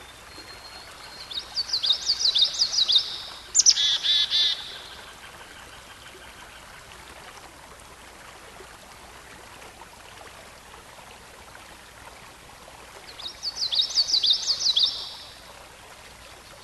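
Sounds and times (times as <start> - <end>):
songbird song: 0.0 - 7.1, 12.9 - 16.6.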